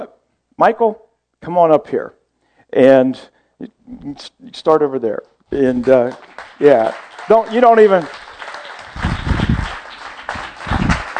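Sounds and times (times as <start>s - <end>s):
speech: 0.0s - 8.2s
church congregation clapping at a Palm Sunday service: 5.6s - 11.1s.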